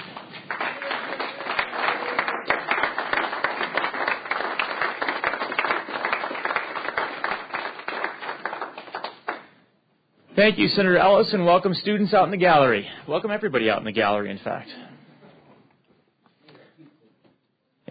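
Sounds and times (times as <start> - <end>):
applause and cheering for students: 0.0 - 9.6
speech: 10.4 - 14.9.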